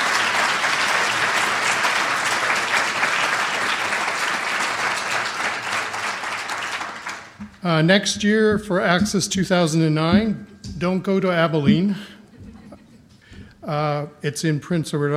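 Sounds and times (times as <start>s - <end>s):
round of applause from audience: 0.0s - 7.4s
speech: 7.6s - 12.1s, 13.7s - 15.1s
laughter: 11.9s - 13.2s.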